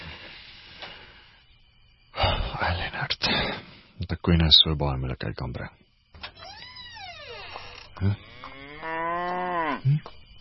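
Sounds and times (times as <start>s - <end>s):
speech: 2.7s - 5.8s, 8.0s - 8.3s, 9.8s - 10.4s
cow mooing: 8.1s - 9.9s.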